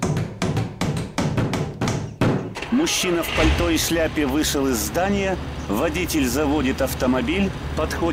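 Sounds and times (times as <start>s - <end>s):
hammer driving nails into the wooden lid of a box: 0.0s - 2.6s
speech: 2.7s - 8.1s.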